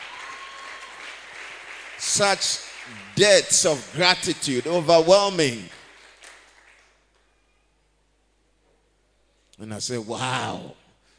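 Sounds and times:
audience clapping: 0:00.0 - 0:07.3
speech: 0:02.0 - 0:05.8, 0:09.6 - 0:10.8.

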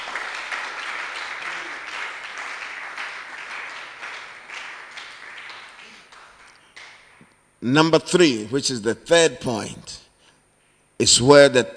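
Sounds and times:
audience clapping: 0:00.0 - 0:07.4
speech: 0:07.6 - 0:10.0, 0:11.0 - 0:11.7.

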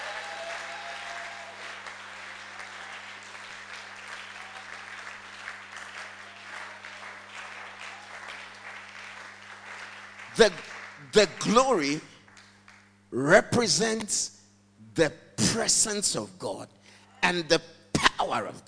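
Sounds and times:
audience clapping: 0:00.0 - 0:13.1
speech: 0:10.4 - 0:12.1, 0:13.1 - 0:14.4, 0:15.0 - 0:18.6.

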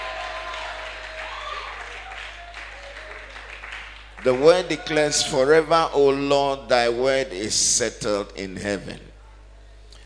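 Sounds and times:
large crowd clapping and shouting: 0:00.0 - 0:05.6
speech: 0:04.2 - 0:09.1.

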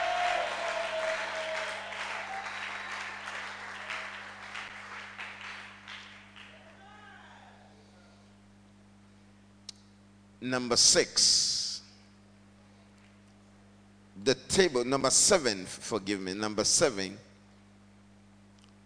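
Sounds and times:
audience clapping: 0:00.0 - 0:07.0
speech: 0:10.4 - 0:11.5, 0:14.3 - 0:17.3.

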